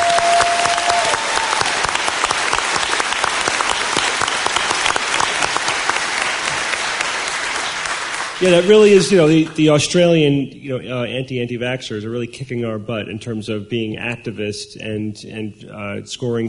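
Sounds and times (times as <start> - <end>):
crowd clapping: 0.0 - 9.8
speech: 8.4 - 16.4.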